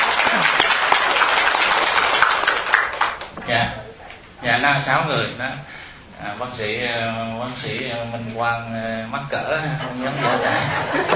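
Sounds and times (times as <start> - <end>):
laughter: 0.0 - 0.9, 9.6 - 11.1
audience clapping: 0.0 - 3.5
speech: 4.5 - 11.1.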